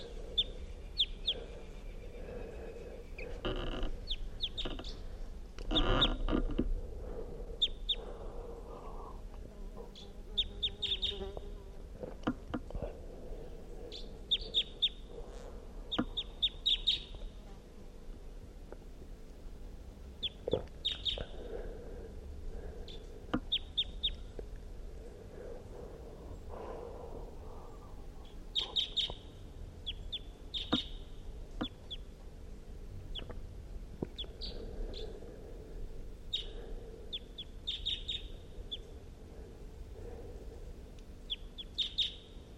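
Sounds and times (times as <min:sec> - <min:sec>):
wild bird chirping from a tree: 0:00.0 - 0:06.3, 0:07.6 - 0:08.1, 0:09.9 - 0:11.4, 0:13.8 - 0:15.1, 0:15.9 - 0:17.3, 0:20.2 - 0:21.3, 0:22.8 - 0:24.3, 0:27.7 - 0:32.1, 0:34.1 - 0:35.2, 0:36.3 - 0:38.9, 0:41.2 - 0:42.4
low rumble: 0:00.0 - 0:42.5.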